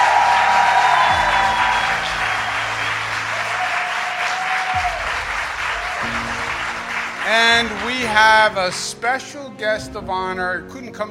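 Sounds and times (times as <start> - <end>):
audience applause: 0.0 - 8.9
speech: 8.2 - 11.1.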